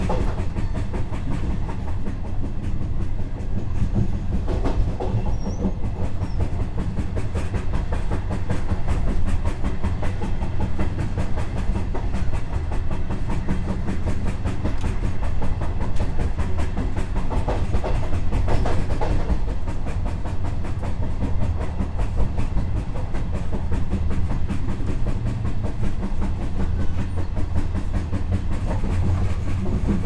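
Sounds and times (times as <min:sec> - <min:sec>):
train: 0:00.0 - 0:30.0.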